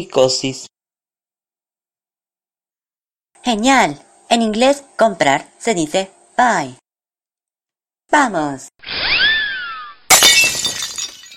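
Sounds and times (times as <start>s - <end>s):
speech: 0.0s - 0.7s, 3.4s - 6.8s, 8.1s - 9.2s
bright chiming tone falling in pitch: 8.8s - 10.0s
ceramic piggy bank shattering: 10.1s - 11.3s
ceramic shards tinkling: 10.1s - 11.3s.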